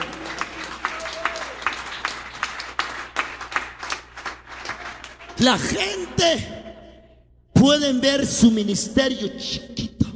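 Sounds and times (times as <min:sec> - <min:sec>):
audience applause: 0:00.0 - 0:05.5
speech: 0:05.4 - 0:06.6, 0:07.6 - 0:10.0.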